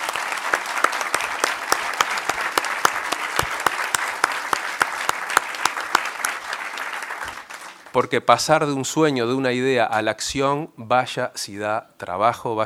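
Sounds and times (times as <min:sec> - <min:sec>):
audience applause: 0:00.0 - 0:08.0
speech: 0:08.0 - 0:12.6.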